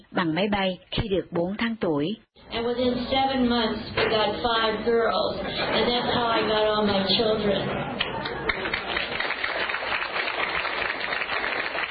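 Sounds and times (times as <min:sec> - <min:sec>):
speech: 0:00.2 - 0:08.0
audience applause: 0:08.0 - 0:11.8.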